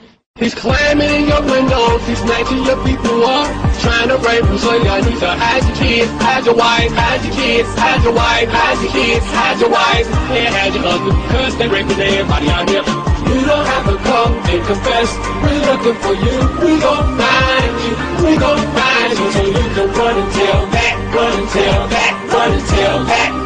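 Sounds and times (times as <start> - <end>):
rap song ringtone: 0.4 - 23.4.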